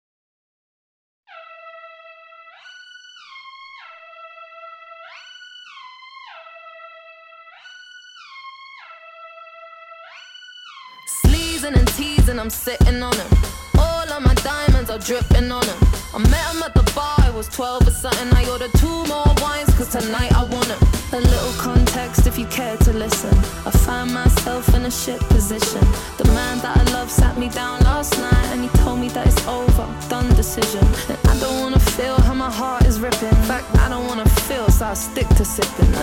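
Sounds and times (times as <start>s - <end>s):
commercial jazz music: 11.1s - 36.0s.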